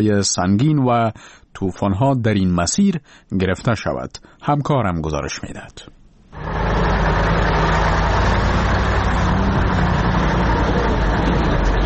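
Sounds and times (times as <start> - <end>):
speech: 0.0 - 6.5
convoys of passenger and cargo vehicles on the road in Salang valley: 6.4 - 11.8.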